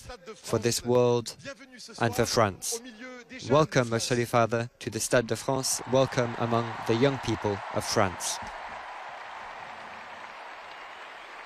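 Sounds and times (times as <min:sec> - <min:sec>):
speech: 0:00.1 - 0:08.6
stadium crowd applause: 0:05.7 - 0:11.4.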